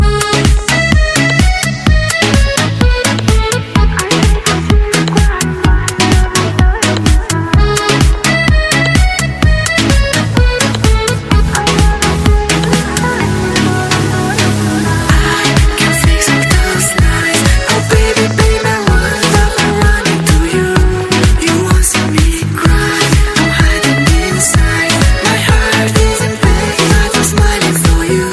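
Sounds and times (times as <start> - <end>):
love instrumental: 0.0 - 28.3.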